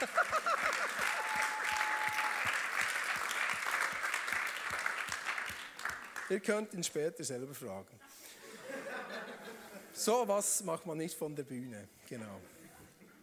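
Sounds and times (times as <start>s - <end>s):
laughter: 0.0s - 1.2s, 8.1s - 10.0s
audience applause: 0.0s - 6.4s
speech: 6.3s - 8.1s, 10.0s - 12.6s.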